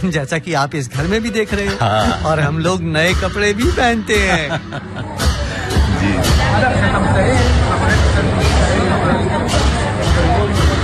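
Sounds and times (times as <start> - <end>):
speech: 0.0 - 5.2, 6.0 - 9.9
crowd at a religious procession: 0.0 - 10.8
laughter: 1.7 - 2.5, 4.1 - 6.3.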